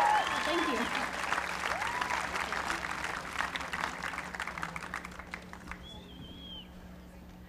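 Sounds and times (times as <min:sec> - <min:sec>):
audience clapping: 0:00.0 - 0:06.5
brief high whistle-like tone: 0:05.8 - 0:06.8.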